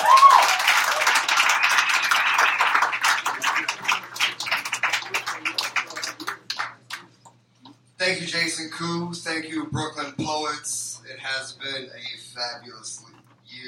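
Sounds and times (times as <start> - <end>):
audience applause for a poet about to read: 0.0 - 7.1
speech: 8.1 - 13.0.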